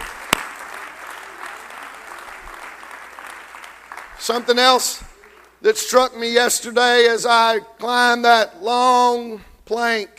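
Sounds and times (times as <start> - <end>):
audience clapping hands: 0.0 - 5.6
speech: 4.2 - 10.1.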